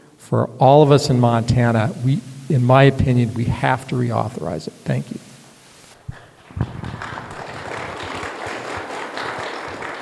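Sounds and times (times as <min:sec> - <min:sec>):
speech: 0:00.3 - 0:05.3
audience applause: 0:06.4 - 0:10.0.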